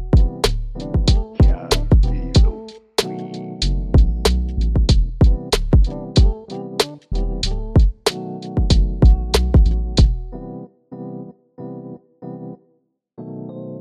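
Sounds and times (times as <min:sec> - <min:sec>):
rap beat in E minor: 0:00.2 - 0:10.2.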